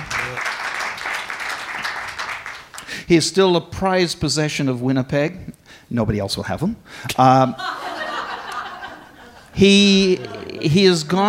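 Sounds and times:
applause: 0:00.0 - 0:03.0
speech: 0:03.1 - 0:07.7, 0:09.6 - 0:11.2
laughter: 0:07.4 - 0:11.2.

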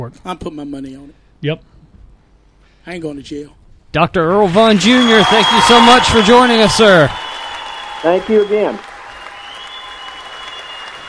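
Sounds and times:
speech: 0:00.0 - 0:01.7, 0:02.8 - 0:07.2, 0:08.0 - 0:08.9
applause: 0:04.5 - 0:11.0.

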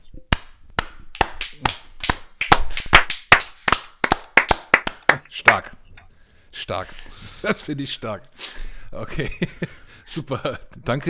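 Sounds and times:
people clapping: 0:00.3 - 0:05.7
speech: 0:05.4 - 0:05.8, 0:06.6 - 0:11.0
laughter: 0:09.0 - 0:10.7.

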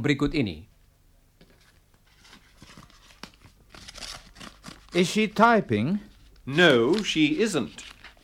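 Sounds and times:
speech: 0:00.0 - 0:00.7, 0:04.9 - 0:07.9
envelope paper tearing and rustling: 0:02.1 - 0:05.2, 0:06.6 - 0:08.2.

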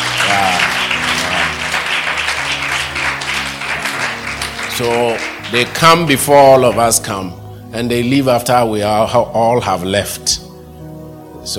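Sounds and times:
audience applause: 0:00.0 - 0:07.2
speech: 0:04.8 - 0:10.4.

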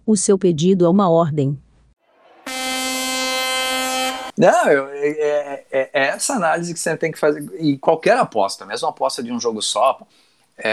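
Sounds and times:
speech: 0:00.1 - 0:01.7, 0:04.4 - 0:10.7
air horn corneta sound effect: 0:02.1 - 0:04.7.

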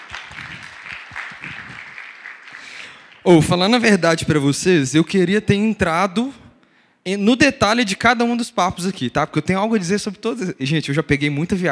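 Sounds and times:
audience applause: 0:00.0 - 0:03.2
speech: 0:03.2 - 0:06.4, 0:07.1 - 0:11.6.

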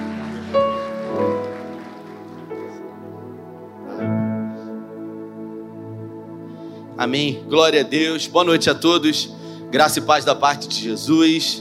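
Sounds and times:
audience applause: 0:00.0 - 0:03.1
speech: 0:07.0 - 0:11.5.

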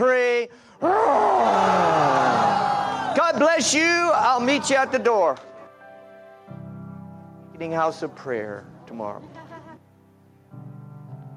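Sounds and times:
audience roaring like a lion: 0:00.8 - 0:03.2
speech: 0:03.4 - 0:05.5, 0:07.6 - 0:09.4.

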